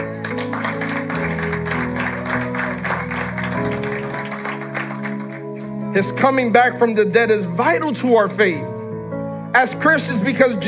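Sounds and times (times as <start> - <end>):
audience clapping: 0.0 - 5.8
sustained keyboard chords: 0.0 - 10.6
speech: 6.0 - 8.8, 9.5 - 10.6.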